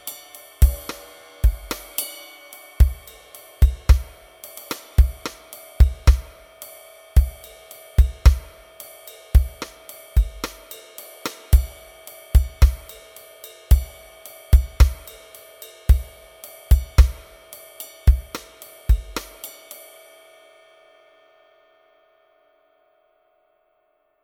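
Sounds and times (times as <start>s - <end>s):
jazz rock drums: 0.0s - 6.4s, 7.2s - 8.6s, 9.4s - 13.1s, 13.7s - 15.2s, 15.9s - 17.4s, 18.1s - 19.6s.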